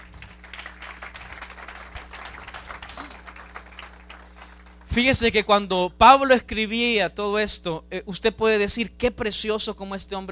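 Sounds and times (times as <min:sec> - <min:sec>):
crowd applauding: 0:00.0 - 0:04.9
speech: 0:05.0 - 0:10.3.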